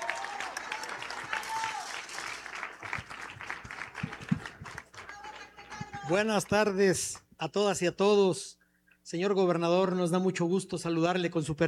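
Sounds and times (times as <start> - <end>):
audience applause: 0.0 - 6.3
speech: 6.1 - 11.6.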